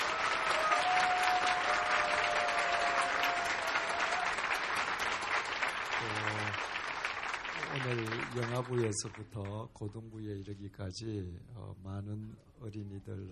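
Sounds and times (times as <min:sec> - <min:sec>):
audience applause: 0:00.0 - 0:09.6
speech: 0:08.4 - 0:13.2.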